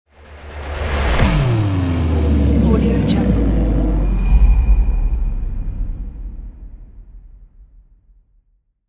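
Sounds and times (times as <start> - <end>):
portal opening: 0.3 - 7.0.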